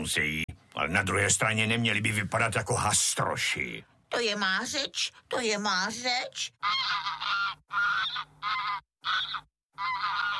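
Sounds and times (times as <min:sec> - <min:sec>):
speech: 0:00.0 - 0:08.3
goose honking: 0:06.6 - 0:10.3.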